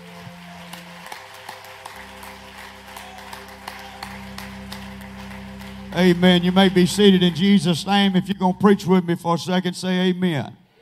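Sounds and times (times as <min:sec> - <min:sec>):
audience clapping hands: 0:00.0 - 0:09.2
sustained low keyboard chords: 0:00.0 - 0:10.4
speech: 0:06.0 - 0:10.6.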